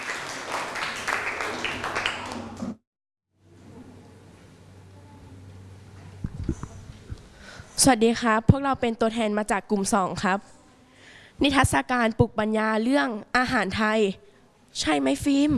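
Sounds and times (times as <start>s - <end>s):
students applauding: 0.0s - 2.8s
speech: 7.8s - 10.6s, 11.4s - 15.5s.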